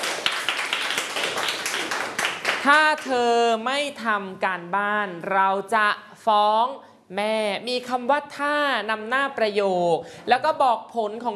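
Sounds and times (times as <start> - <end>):
class clapping for a student: 0.0 - 3.2
speech: 2.6 - 11.3.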